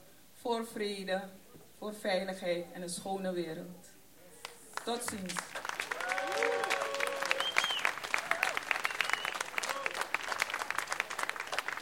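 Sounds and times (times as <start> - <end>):
speech: 0.4 - 3.9, 4.8 - 5.5
audience applause: 4.8 - 11.7.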